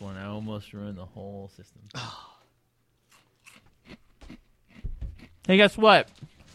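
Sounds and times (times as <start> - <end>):
speech: 0.6 - 2.3, 5.5 - 6.3
crunching and chewing of dry, slightly stale cereal: 3.0 - 5.6.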